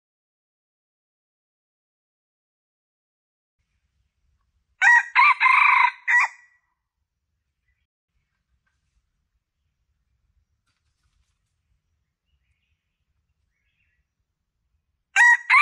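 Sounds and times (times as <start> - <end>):
Red junglefowl crowing: 4.8 - 6.5, 15.2 - 15.5.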